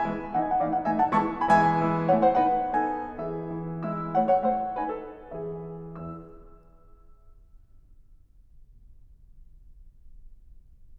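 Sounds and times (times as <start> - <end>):
piano mazurka: 0.0 - 7.2.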